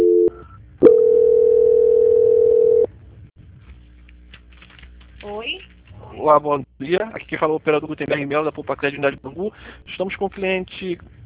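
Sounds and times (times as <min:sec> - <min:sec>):
telephone call transfer tone: 0:00.0 - 0:02.9
speech: 0:06.3 - 0:11.2.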